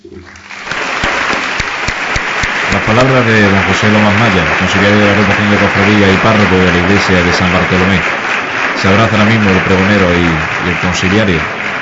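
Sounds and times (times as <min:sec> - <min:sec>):
audience applause: 0:00.2 - 0:11.7
speech: 0:02.9 - 0:11.6.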